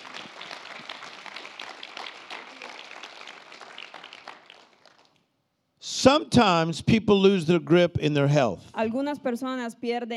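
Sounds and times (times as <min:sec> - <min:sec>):
crowd clapping: 0:00.0 - 0:05.4
speech: 0:06.0 - 0:10.1.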